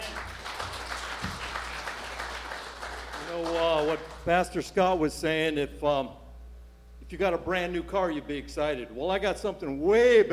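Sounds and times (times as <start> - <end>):
audience applause: 0.0 - 4.3
speech: 3.4 - 6.2, 7.1 - 10.3.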